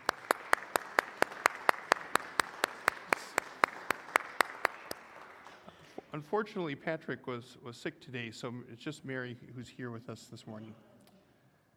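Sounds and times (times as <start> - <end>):
audience clapping: 0.0 - 6.1
speech: 6.2 - 10.9.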